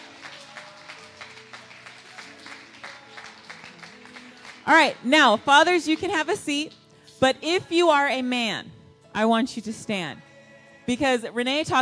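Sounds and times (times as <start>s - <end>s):
audience applause: 0.0s - 4.7s
speech: 4.7s - 10.3s, 10.9s - 11.8s.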